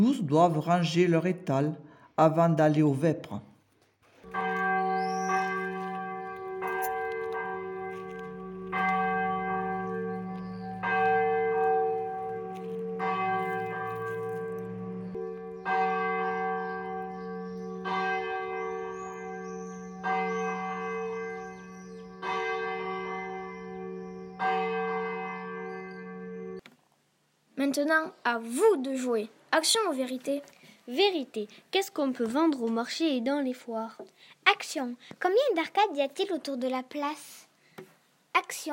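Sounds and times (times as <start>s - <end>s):
speech: 0.0s - 3.5s, 27.9s - 37.4s, 38.5s - 38.7s
church bell in a bell tower tolling to mark the end of the market: 4.3s - 26.6s.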